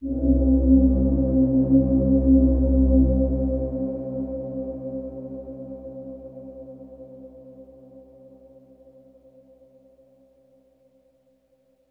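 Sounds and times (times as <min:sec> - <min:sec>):
ambient synth pad in C: 0:00.0 - 0:08.6.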